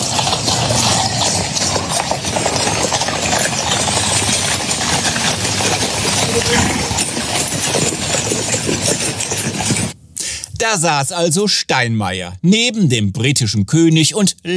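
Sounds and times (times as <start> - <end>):
crowd and street noise: 0.0 - 10.7
horse-drawn carriage hooves clip-clopping on a hard surface: 0.0 - 10.8
speech: 10.6 - 14.5.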